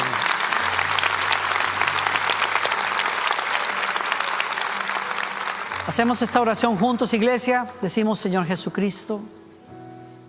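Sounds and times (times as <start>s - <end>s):
audience applause: 0.0s - 6.9s
speech: 5.9s - 9.4s.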